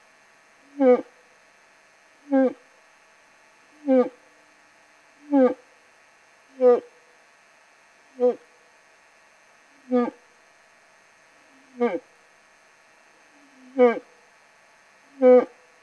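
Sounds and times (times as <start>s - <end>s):
old bull moose calling in rut: 0.7s - 1.2s, 2.3s - 2.6s, 3.8s - 4.2s, 5.2s - 5.7s, 6.6s - 7.0s, 8.2s - 8.5s, 9.8s - 10.2s, 11.5s - 12.1s, 13.3s - 14.1s, 15.1s - 15.6s.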